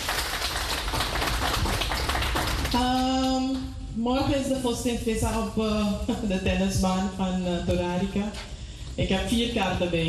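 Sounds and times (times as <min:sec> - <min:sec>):
audience applause: 0:00.0 - 0:02.8
speech: 0:02.8 - 0:03.0, 0:04.0 - 0:10.0.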